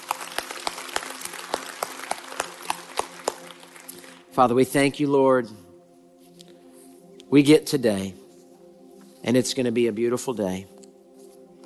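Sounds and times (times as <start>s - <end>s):
audience cheering and applause: 0.0s - 4.3s
speech: 4.4s - 5.6s, 7.3s - 8.2s, 9.2s - 10.7s.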